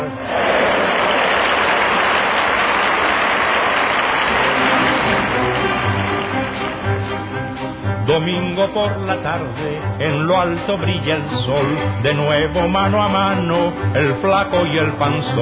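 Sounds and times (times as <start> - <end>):
crowd applauding wildly: 0.2 - 7.6
speech: 8.2 - 15.3.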